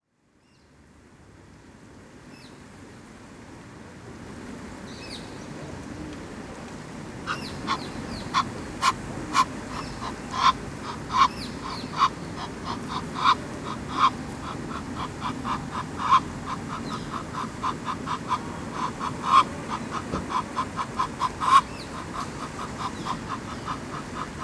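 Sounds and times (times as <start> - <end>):
duck quacking: 7.3 - 24.4
thin bird chirps: 7.3 - 24.4.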